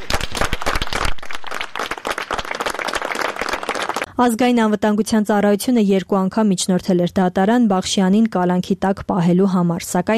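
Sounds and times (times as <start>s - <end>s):
judges and lawyers applauding outside the Vardashen penitentiary: 0.0s - 4.1s
speech: 4.2s - 10.1s.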